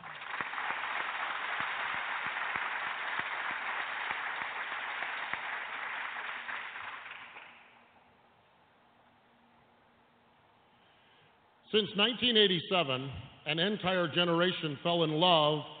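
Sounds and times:
audience applause: 0.0 - 7.6
speech: 11.7 - 15.7.

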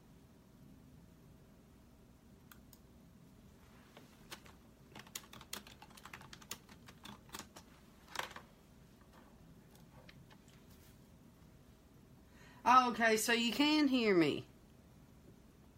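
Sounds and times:
typing on a computer keyboard: 4.3 - 8.5
speech: 12.8 - 14.5.

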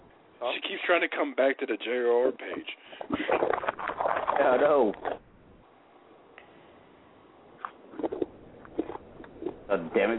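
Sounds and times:
speech: 0.4 - 5.2, 9.7 - 10.1
person eating something out of a bag: 3.2 - 5.2, 7.9 - 9.7.

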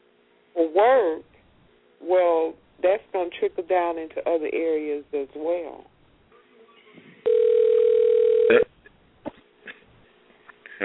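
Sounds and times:
speech: 0.6 - 1.3, 2.0 - 5.9
telephone ringing: 7.3 - 8.6.

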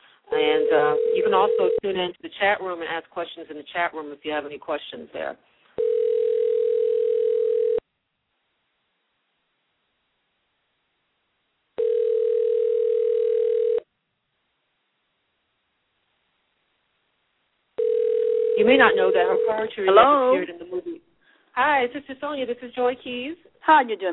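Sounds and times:
phone line ringback tone: 0.3 - 1.8, 5.8 - 7.8, 11.8 - 13.8, 17.8 - 20.2
speech: 0.7 - 5.5, 18.8 - 24.1.

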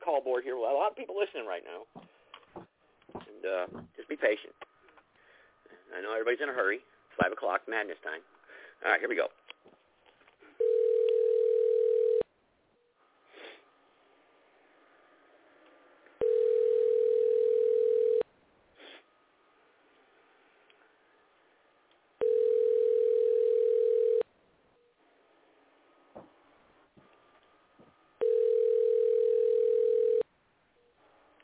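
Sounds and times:
speech: 0.1 - 2.7, 3.4 - 4.7, 5.9 - 9.4
telephone line tone while dialing in: 10.6 - 12.3, 16.2 - 18.3, 22.2 - 24.3, 28.2 - 30.3.

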